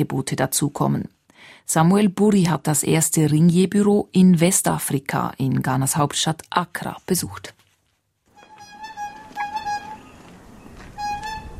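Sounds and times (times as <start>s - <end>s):
speech: 0.0s - 7.6s
ice vendor's cart horn honking: 8.4s - 11.5s.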